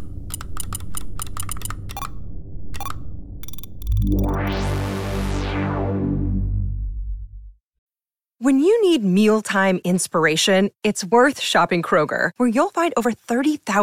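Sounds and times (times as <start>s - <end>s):
sustained harmonic tone: 0.0s - 7.5s
password typed on a computer keyboard: 0.2s - 2.1s
speech: 8.5s - 13.8s.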